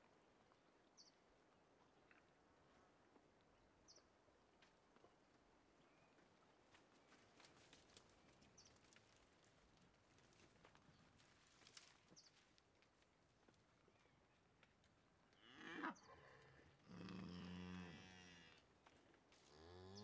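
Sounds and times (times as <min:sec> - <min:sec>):
cattle in countryside in Uruguay by day: 0:15.3 - 0:20.0.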